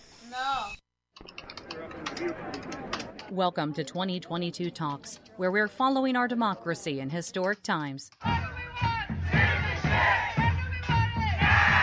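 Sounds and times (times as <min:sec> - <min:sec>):
speech: 0:00.3 - 0:01.3, 0:02.2 - 0:08.4
immigration advocates chanting outside a federal appeals court in New Orleans: 0:08.2 - 0:11.8.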